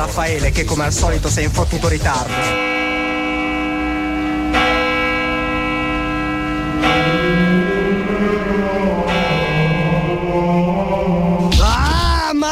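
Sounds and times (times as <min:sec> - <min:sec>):
speech: 0:00.0 - 0:03.0
heavy church bells tolling at eight o'clock: 0:02.3 - 0:11.6.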